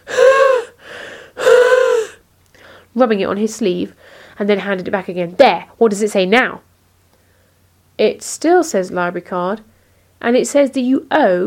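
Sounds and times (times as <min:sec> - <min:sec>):
person breathing heavily onto a library card: 0:00.0 - 0:02.9, 0:04.0 - 0:04.4
speech: 0:03.0 - 0:06.7, 0:08.0 - 0:11.4.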